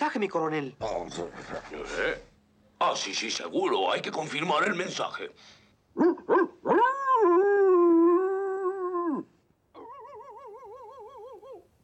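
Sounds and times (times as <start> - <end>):
speech: 0.1 - 6.4
cartoon dog wavering howl: 6.0 - 11.6
cartoon dogs barking: 9.8 - 11.7.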